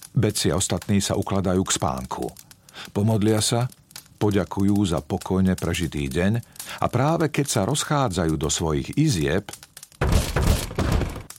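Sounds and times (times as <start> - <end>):
speech: 0.2 - 9.6
firm knocking on a front door: 10.0 - 11.3.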